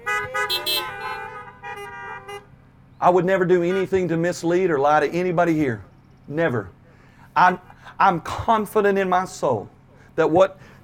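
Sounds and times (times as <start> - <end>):
car horns honking: 0.0 - 4.2
speech: 3.0 - 6.8, 7.4 - 10.8.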